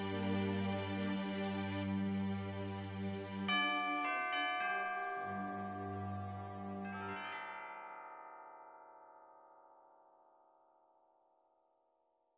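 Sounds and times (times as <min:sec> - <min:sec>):
choral carol: 0:00.0 - 0:07.8.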